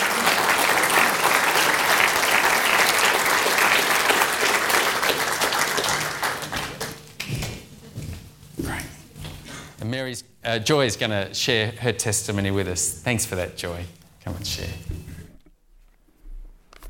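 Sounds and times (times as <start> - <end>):
crowd applauding: 0.0 - 7.5
speech: 10.0 - 14.7.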